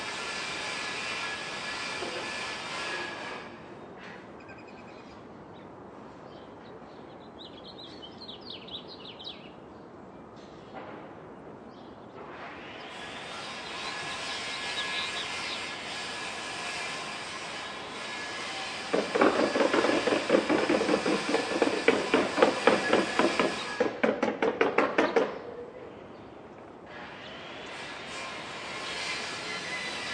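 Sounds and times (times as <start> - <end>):
contractor saw: 0.0 - 4.2, 12.2 - 25.3, 26.9 - 30.1
contractor hammer: 18.9 - 25.4.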